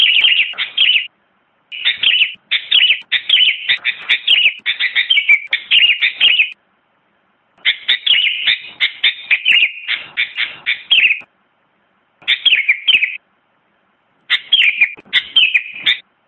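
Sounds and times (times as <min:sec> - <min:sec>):
sooty-headed bulbul singing vigorously: 0:00.0 - 0:01.1, 0:01.7 - 0:06.6, 0:07.6 - 0:11.3, 0:12.2 - 0:13.2, 0:14.3 - 0:16.1.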